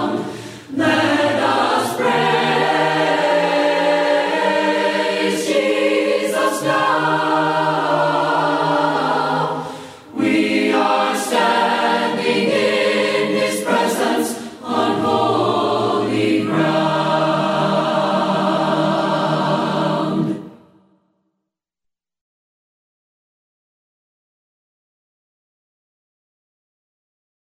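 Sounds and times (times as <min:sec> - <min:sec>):
voices singing hymns a cappella: 0:00.0 - 0:20.8.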